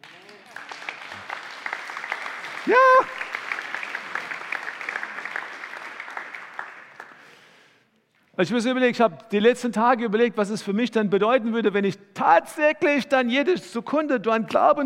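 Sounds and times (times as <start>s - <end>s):
audience applause: 0.0s - 7.6s
speech: 2.6s - 3.2s, 8.4s - 14.8s.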